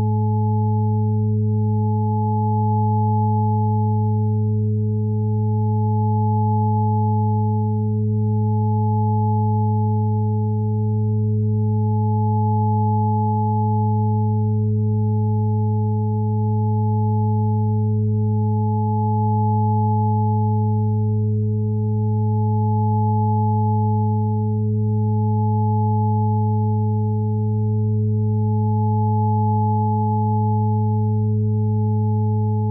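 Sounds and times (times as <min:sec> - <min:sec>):
852 Hz tone: 0:00.0 - 0:32.6.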